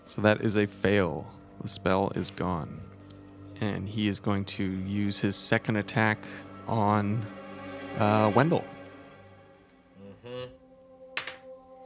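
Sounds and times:
steady musical background: 0:00.0 - 0:11.8
speech: 0:00.1 - 0:02.9, 0:03.6 - 0:07.4, 0:08.0 - 0:08.8
dice clattering on a table during a tabletop role-playing game: 0:11.2 - 0:11.4.

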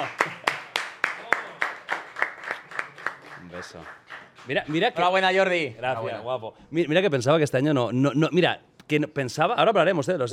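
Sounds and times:
audience rhythmic clapping: 0:00.0 - 0:05.3
speech: 0:03.6 - 0:10.3.

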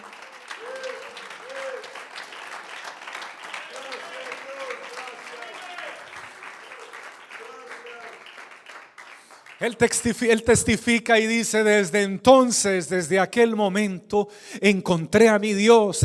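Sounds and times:
raised voices and cheers: 0:00.0 - 0:02.1, 0:03.5 - 0:08.2
audience applause: 0:00.0 - 0:10.3
speech: 0:09.6 - 0:16.0.

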